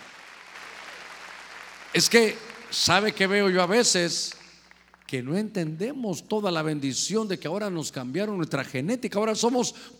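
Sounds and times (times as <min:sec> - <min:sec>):
audience clapping: 0:00.0 - 0:05.2
speech: 0:02.0 - 0:04.4, 0:05.1 - 0:09.9.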